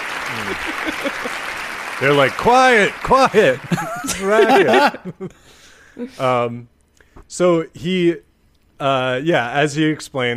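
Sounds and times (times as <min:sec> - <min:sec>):
audience applause: 0:00.0 - 0:05.0
laughter: 0:00.2 - 0:05.4
speech: 0:00.4 - 0:10.3.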